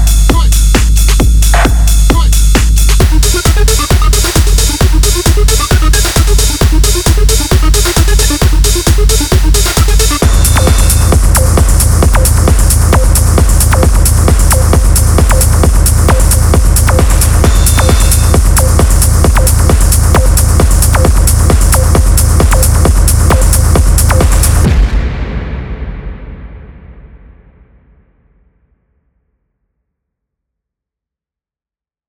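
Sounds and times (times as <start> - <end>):
hard techno music: 0.0 - 25.0.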